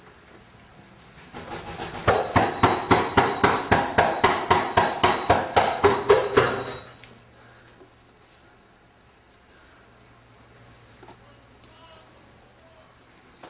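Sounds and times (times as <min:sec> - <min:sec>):
police pounding on a door: 0:01.4 - 0:06.7.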